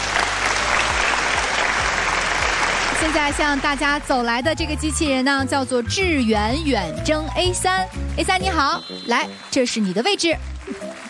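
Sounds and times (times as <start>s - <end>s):
audience applause inviting a guest onto the stage: 0.0s - 4.1s, 7.8s - 11.0s
speech: 3.0s - 10.9s.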